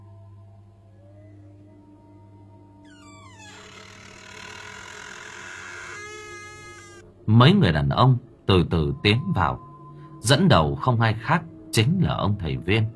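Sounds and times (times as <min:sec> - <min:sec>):
old door hinge creaking: 0:02.9 - 0:07.0
speech: 0:07.3 - 0:12.9.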